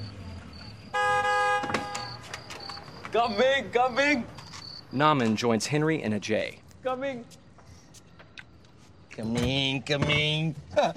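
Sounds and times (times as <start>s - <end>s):
car arriving: 0.0s - 5.5s
car horn toot: 0.9s - 2.8s
speech: 3.1s - 7.4s, 9.2s - 10.9s.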